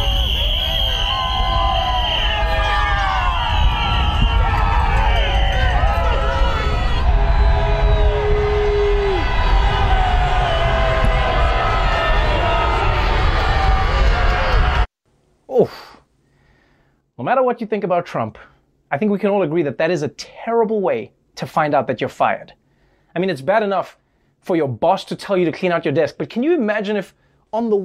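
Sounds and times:
whistles: 0.0 - 12.9
horn-like tones: 0.0 - 13.8
large crowd cheering and shouting in the street: 0.0 - 14.9
speech: 17.3 - 27.8.

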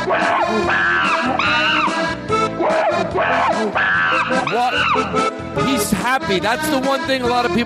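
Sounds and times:
chimpanzee screaming: 0.0 - 5.3
speech: 0.5 - 0.9, 6.1 - 7.6.

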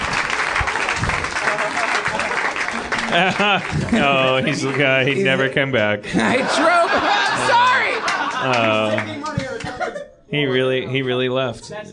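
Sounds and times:
crowd applause: 0.0 - 5.5, 6.4 - 9.8
laughter: 1.2 - 11.3
speech: 3.1 - 7.2, 8.4 - 9.4, 10.3 - 11.9.

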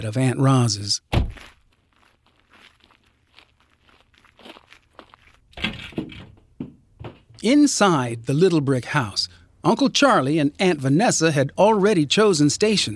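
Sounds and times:
speech: 0.0 - 1.5, 7.4 - 12.9
car tires crunching over a gravel driveway: 1.3 - 5.6.

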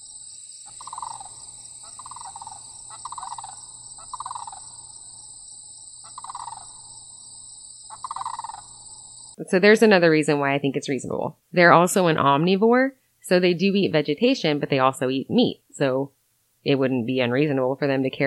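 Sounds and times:
large bird calling in flight circling prey: 0.0 - 5.1, 6.0 - 7.0, 7.9 - 9.0
crickets or insects droning: 0.0 - 9.4
speech: 9.4 - 18.2.

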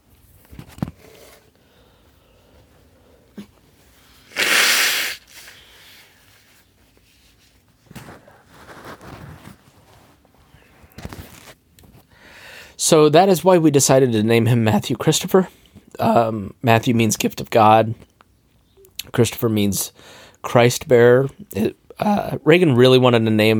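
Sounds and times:
nose blowing: 4.2 - 5.9
speech: 12.9 - 18.1, 19.1 - 23.5.

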